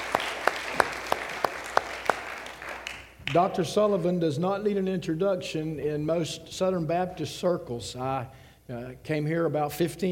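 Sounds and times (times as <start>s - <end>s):
congregation applauding a guest and his wife: 0.0s - 4.0s
speech: 3.3s - 10.1s.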